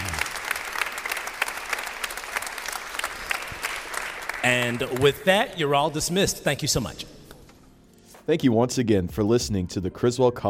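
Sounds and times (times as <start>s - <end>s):
audience clapping hands: 0.0s - 6.2s
speech: 4.4s - 7.2s, 8.3s - 10.4s.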